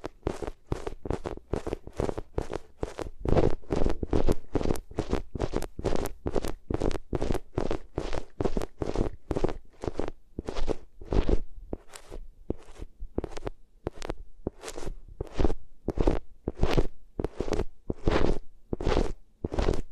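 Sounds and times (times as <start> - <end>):
ears rubbed against different materials: 0.0 - 19.9.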